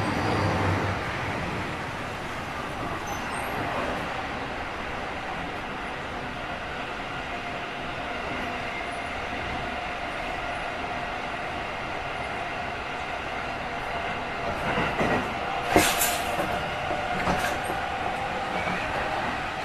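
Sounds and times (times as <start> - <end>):
Yokosuka Sobu Rapid 253 train: 0.0 - 19.6.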